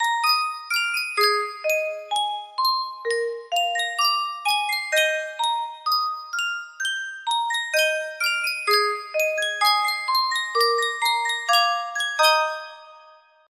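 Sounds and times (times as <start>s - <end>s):
Sankyo music box melody: 0.0s - 13.5s.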